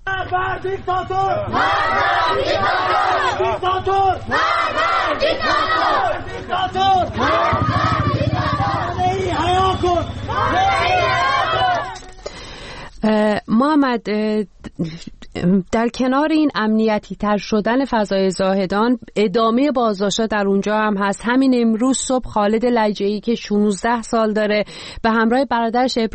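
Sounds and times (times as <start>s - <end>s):
speech: 0.2s - 7.9s, 13.0s - 26.1s
protesters chanting slogans in the streets of Rask: 0.2s - 12.1s
continuous roar of many voices: 0.5s - 12.2s.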